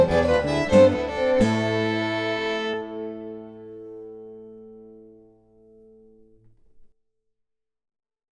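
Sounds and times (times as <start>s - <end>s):
jig tune played at full speed: 0.0s - 4.6s.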